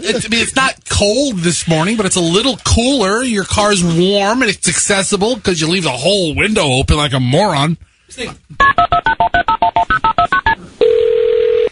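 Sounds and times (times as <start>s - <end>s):
speech: 0.0s - 9.0s
steady telephone tone: 8.7s - 11.7s.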